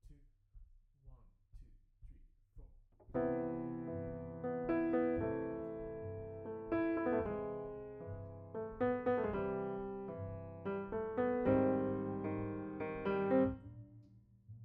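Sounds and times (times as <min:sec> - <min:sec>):
piano note B: 0:03.2 - 0:14.0.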